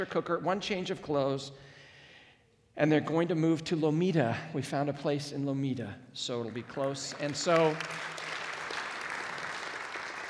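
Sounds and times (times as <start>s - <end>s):
speech: 0.0s - 1.8s, 2.8s - 8.3s
audience applauding: 6.4s - 10.2s.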